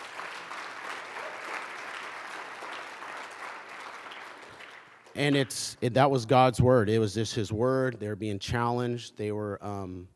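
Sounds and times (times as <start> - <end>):
church congregation round of applause: 0.0 - 5.7
speech: 5.2 - 10.1.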